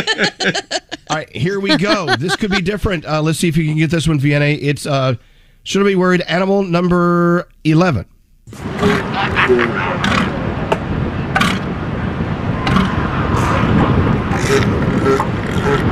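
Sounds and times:
laughter: 0:00.0 - 0:03.0, 0:08.8 - 0:10.3
speech: 0:00.0 - 0:10.4, 0:14.5 - 0:15.8
water: 0:08.5 - 0:15.8.

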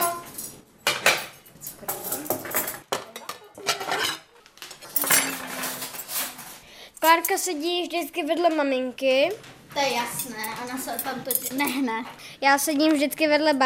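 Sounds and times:
cutlery and dishes clattering as a table is set: 0:00.0 - 0:07.4, 0:10.0 - 0:12.1
speech: 0:07.1 - 0:13.6.

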